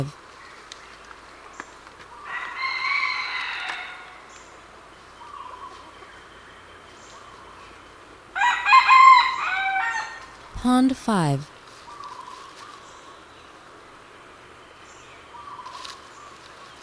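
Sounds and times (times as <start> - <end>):
speech: 0.0 - 0.2, 10.6 - 11.6
faint birds: 0.0 - 10.6, 11.4 - 16.8
red junglefowl crowing: 2.2 - 4.2, 8.4 - 10.2.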